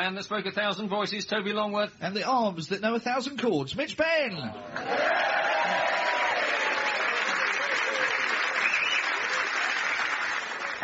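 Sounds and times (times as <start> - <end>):
speech: 0.0 - 5.9
studio audience clapping welcoming panelists: 4.8 - 10.8.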